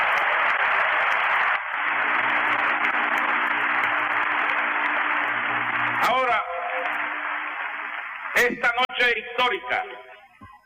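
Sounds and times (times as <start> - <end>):
audience applause: 0.0 - 9.2
speech: 8.4 - 10.1.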